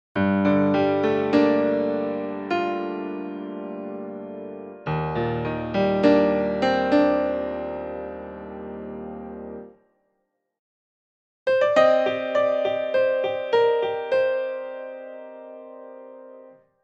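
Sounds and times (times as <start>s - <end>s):
piano: 0.2s - 9.9s, 11.5s - 16.8s.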